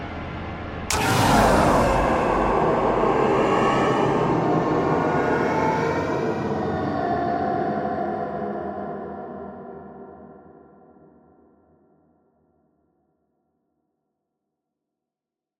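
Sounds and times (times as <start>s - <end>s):
ghostly haunting horror composition with swells: 0.9s - 10.9s.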